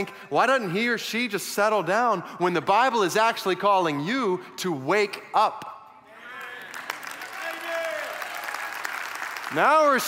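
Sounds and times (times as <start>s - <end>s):
speech: 0.0s - 5.7s, 9.5s - 10.0s
audience clapping: 6.2s - 10.0s.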